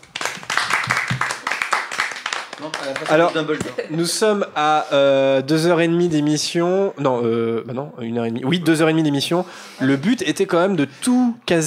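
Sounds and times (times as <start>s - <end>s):
hosts applauding themselves: 0.0s - 3.8s
speech: 2.6s - 11.6s.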